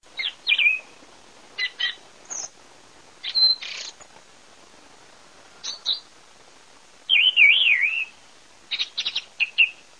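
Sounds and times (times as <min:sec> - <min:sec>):
song thrush singing: 0:00.2 - 0:01.0, 0:01.6 - 0:02.6, 0:03.2 - 0:04.0, 0:05.6 - 0:06.1, 0:07.1 - 0:09.8.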